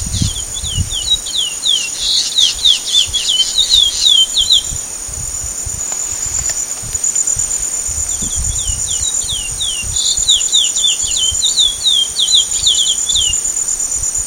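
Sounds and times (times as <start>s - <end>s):
chestnut-bellied seed finch whistling song: 0.1s - 4.8s, 8.1s - 13.5s.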